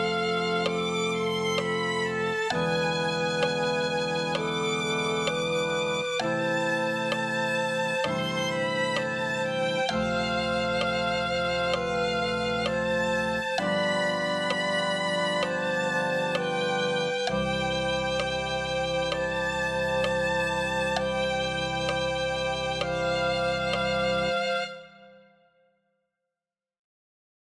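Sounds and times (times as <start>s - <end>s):
violin melody: 0.0s - 25.4s.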